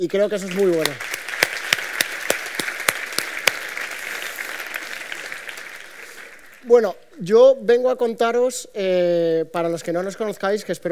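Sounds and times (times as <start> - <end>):
speech: 0.0 - 1.1, 6.6 - 10.9
audience applause: 0.3 - 6.7.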